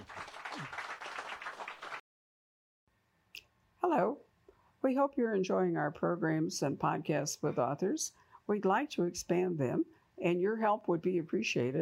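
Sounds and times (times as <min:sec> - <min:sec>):
audience applause: 0:00.0 - 0:02.0
speech: 0:04.9 - 0:11.8.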